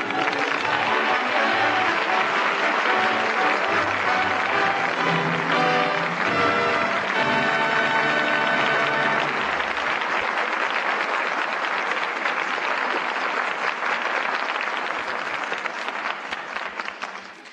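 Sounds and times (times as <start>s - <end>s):
audience applause as curtain falls: 0.0s - 17.5s.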